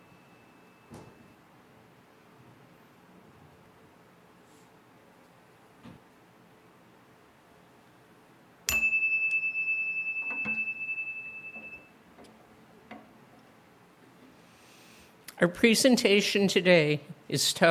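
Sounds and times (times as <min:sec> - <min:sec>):
meditation chime ringing: 0:08.7 - 0:11.9
speech: 0:15.4 - 0:17.6.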